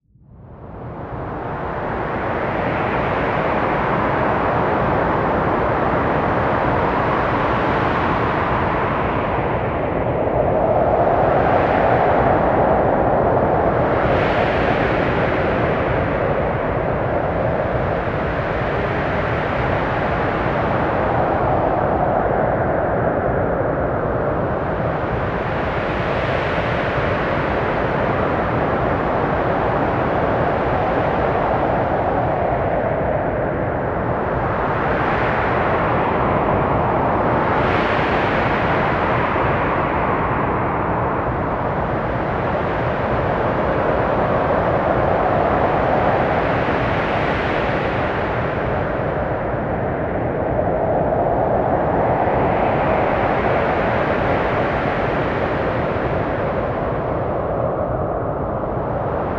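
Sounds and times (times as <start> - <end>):
strong wind: 0.0 - 59.3.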